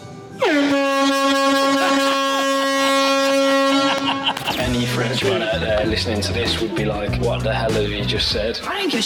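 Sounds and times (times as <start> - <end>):
air horn blast: 0.4 - 4.7
laughter: 1.6 - 2.9, 3.6 - 8.0
speech: 5.2 - 9.0.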